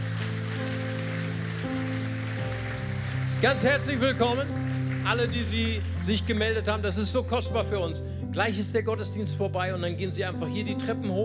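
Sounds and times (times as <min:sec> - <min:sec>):
audience applause: 0:00.0 - 0:06.8
speech: 0:03.4 - 0:11.2.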